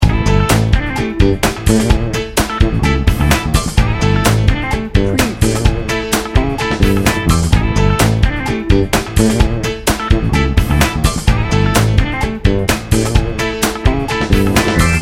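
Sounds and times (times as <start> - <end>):
rock funk loop: 0.0 - 15.0.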